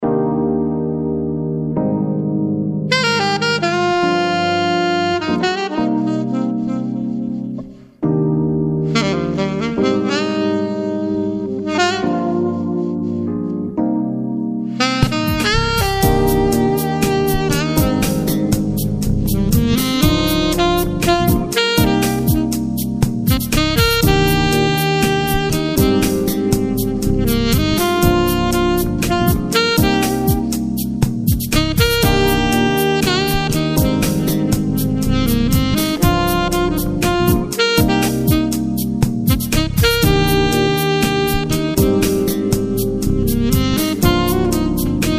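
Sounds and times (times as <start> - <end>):
lounge music: 0.0 - 45.1.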